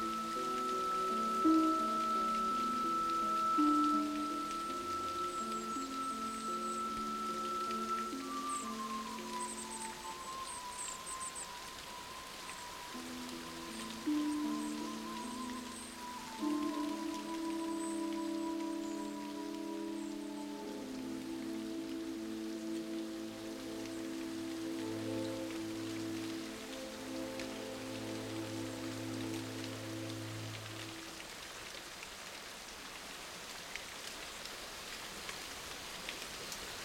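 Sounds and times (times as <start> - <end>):
nature music: 0.0 - 36.8
birds: 3.6 - 31.0.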